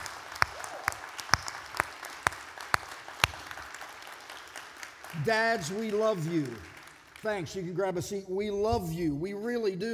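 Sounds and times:
round of applause: 0.0s - 7.7s
speech: 5.2s - 9.9s.

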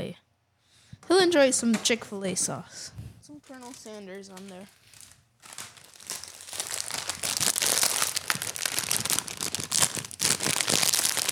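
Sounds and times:
speech: 1.0s - 4.8s
chip bag crinkling and rustling: 3.3s - 11.3s.

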